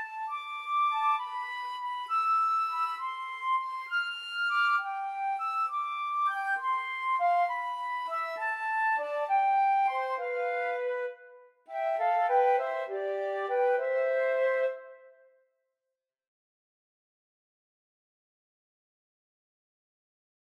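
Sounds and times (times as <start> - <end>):
flute trio playing: 0.0 - 15.2.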